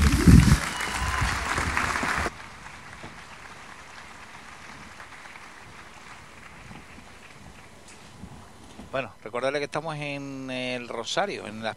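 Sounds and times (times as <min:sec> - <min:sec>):
audience applause: 0:00.0 - 0:07.8
speech: 0:09.0 - 0:11.7.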